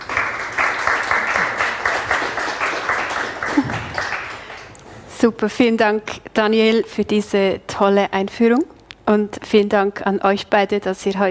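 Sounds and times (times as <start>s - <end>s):
crowd applause: 0.0s - 4.7s
speech: 5.2s - 11.3s.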